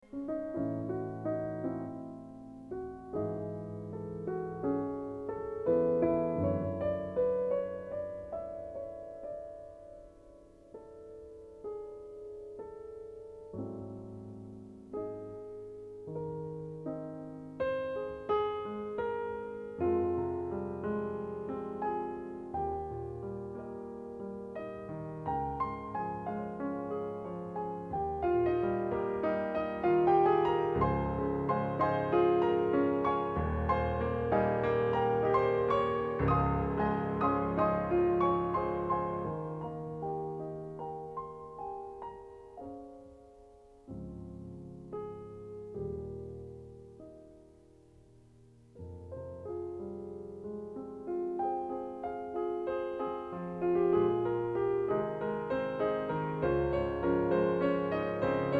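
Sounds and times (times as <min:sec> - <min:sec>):
piano music: 0:00.0 - 0:58.5.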